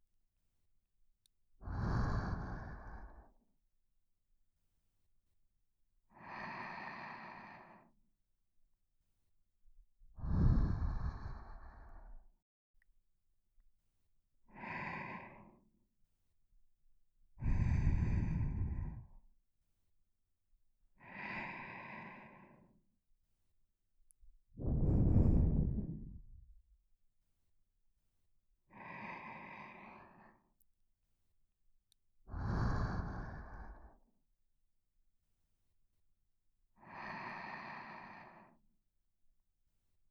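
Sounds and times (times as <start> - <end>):
person breathing in sleep: 1.6 - 3.4, 6.1 - 8.0, 10.2 - 12.2, 14.5 - 15.7, 17.4 - 19.2, 21.0 - 22.8, 24.6 - 26.5, 28.7 - 30.5, 32.3 - 34.1, 36.8 - 38.6.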